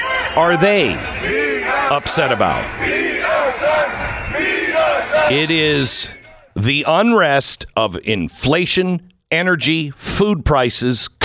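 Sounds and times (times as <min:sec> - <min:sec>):
people shouting: 0:00.0 - 0:06.5
street protest crowd roaring: 0:00.0 - 0:06.6
speech: 0:00.4 - 0:11.2.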